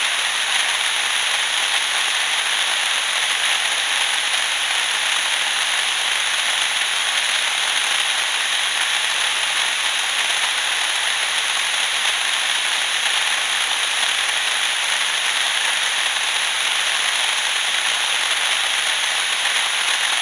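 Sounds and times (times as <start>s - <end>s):
SRF-T610V noise: 0.0s - 20.2s.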